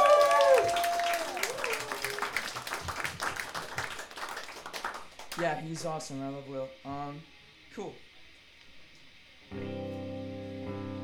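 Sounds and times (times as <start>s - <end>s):
live show audience applause: 0.0s - 5.8s
speech: 5.4s - 8.1s, 9.5s - 9.8s.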